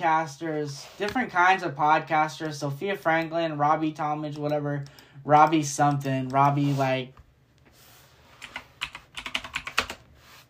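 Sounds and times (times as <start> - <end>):
speech: 0.0 - 7.2
typing on a computer keyboard: 8.4 - 10.0.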